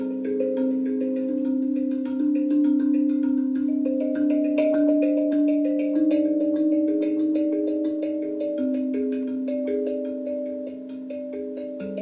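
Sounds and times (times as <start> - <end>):
Akebono improvisation played by hand: 0.0 - 12.0.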